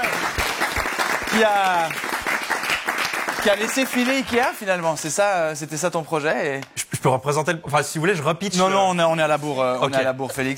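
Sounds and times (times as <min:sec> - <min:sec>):
crowd applause: 0:00.0 - 0:04.6
speech: 0:01.3 - 0:02.1, 0:03.4 - 0:10.5.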